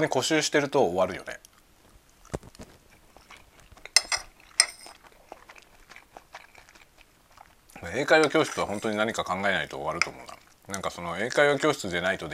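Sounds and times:
speech: 0:00.0 - 0:01.5, 0:07.9 - 0:12.3
person chewing fried rice: 0:01.3 - 0:12.3
metal cutlery clinking against a dish: 0:03.9 - 0:05.0.

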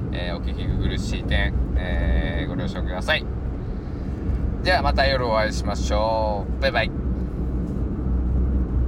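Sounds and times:
car noise: 0:00.0 - 0:08.8
speech: 0:00.2 - 0:03.4, 0:04.6 - 0:07.0.

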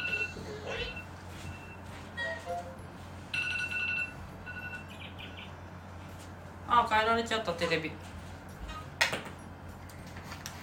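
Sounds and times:
alarm ringing: 0:00.0 - 0:02.4, 0:03.3 - 0:05.0
speech: 0:06.8 - 0:08.1.

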